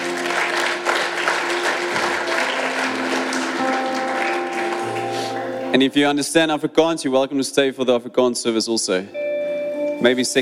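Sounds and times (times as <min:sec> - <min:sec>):
audience applause at a church service: 0:00.0 - 0:05.7
speech: 0:05.7 - 0:09.2, 0:10.0 - 0:10.4.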